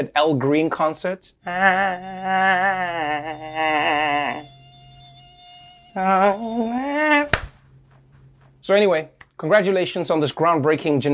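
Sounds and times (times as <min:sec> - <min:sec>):
speech: 0:00.0 - 0:04.6, 0:06.0 - 0:07.4, 0:08.6 - 0:11.1
mosquito whining near the ear: 0:01.4 - 0:07.4.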